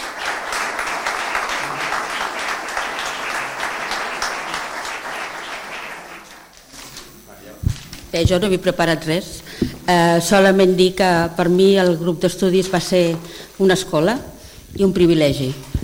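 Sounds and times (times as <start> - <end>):
audience applause: 0.0 - 6.6
speech: 8.1 - 15.7.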